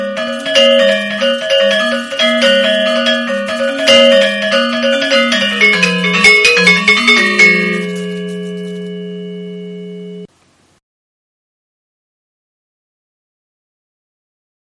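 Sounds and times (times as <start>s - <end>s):
wayang gamelan music: 0.0s - 10.2s.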